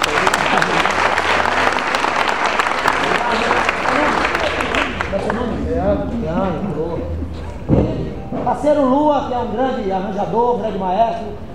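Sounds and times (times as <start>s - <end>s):
crowd applauding: 0.0s - 6.5s
laughter: 0.0s - 8.2s
speech: 8.6s - 11.5s.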